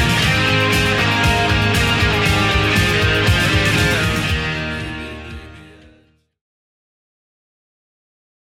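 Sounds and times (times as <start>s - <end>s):
1980s-style dance remix at 118 bpm: 0.0s - 6.2s.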